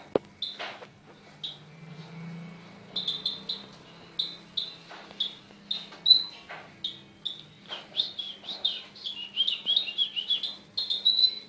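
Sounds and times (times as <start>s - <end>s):
mountain sunbird singing: 0.4s - 0.6s, 1.4s - 1.7s, 2.9s - 11.4s.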